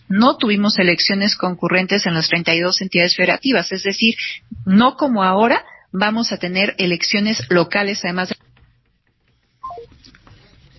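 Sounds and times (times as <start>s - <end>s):
speech: 0.1s - 8.4s
telephone tones after a call is cut off: 9.6s - 9.9s.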